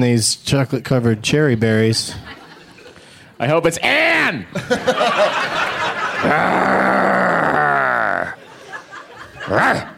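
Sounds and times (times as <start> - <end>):
speech: 0.0 - 2.4, 3.4 - 7.1
laughter: 2.1 - 3.2, 4.5 - 9.9
woman imitating a growl: 6.2 - 8.4.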